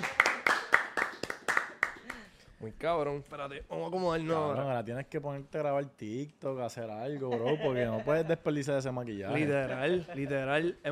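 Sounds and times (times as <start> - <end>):
rhythmic clapping: 0.0 - 2.4
speech: 2.6 - 10.9.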